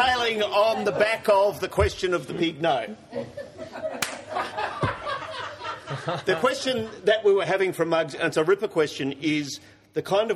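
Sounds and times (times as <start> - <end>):
speech: 0.3 - 3.5, 5.9 - 10.3
laughter: 3.0 - 7.4
hand clap: 4.0 - 4.3.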